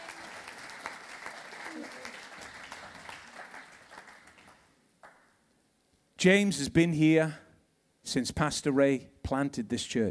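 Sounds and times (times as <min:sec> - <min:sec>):
audience applause: 0:00.0 - 0:05.2
speech: 0:06.2 - 0:07.4, 0:08.1 - 0:10.0.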